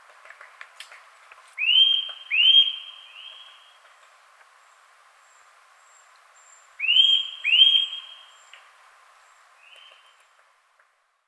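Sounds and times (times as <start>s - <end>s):
Eurasian nuthatch upslurred whistles: 1.6s - 3.6s, 6.8s - 8.5s.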